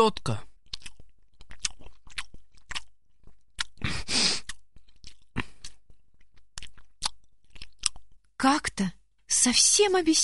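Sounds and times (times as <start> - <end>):
speech: 0.0 - 0.5, 8.4 - 10.2
person chewing food from a pig trough: 0.5 - 8.3.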